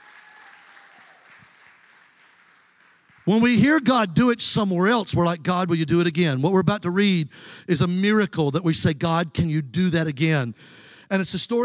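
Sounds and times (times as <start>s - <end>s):
crowd applause: 0.0s - 3.5s
speech: 3.2s - 11.6s.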